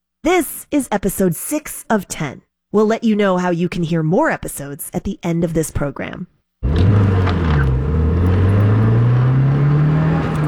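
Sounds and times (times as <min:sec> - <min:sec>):
speech: 0:00.3 - 0:07.6
silver sedan screaming through a multi-story parking lot: 0:06.6 - 0:10.4.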